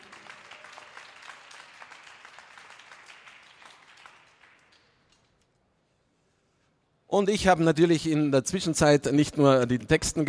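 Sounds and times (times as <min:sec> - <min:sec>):
audience applause for a University of Vienna poetry slam performer: 0:00.0 - 0:05.1
speech: 0:07.1 - 0:10.2.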